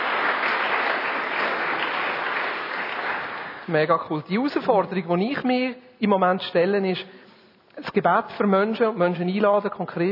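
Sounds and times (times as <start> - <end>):
audience clapping: 0.0 - 3.8
speech: 3.7 - 7.2, 7.8 - 10.0.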